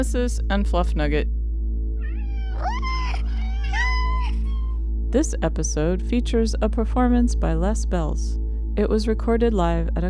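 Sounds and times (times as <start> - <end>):
speech: 0.0 - 1.4, 5.1 - 10.0
cat meowing: 2.0 - 4.8.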